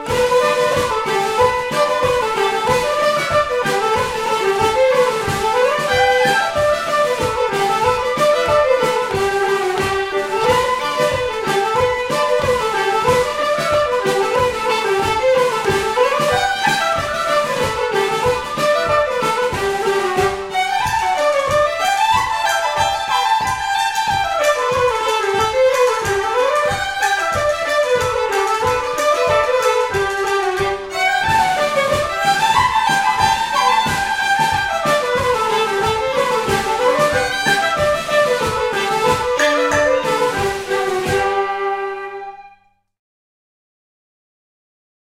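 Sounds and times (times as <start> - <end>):
polka music: 0.0 - 42.8.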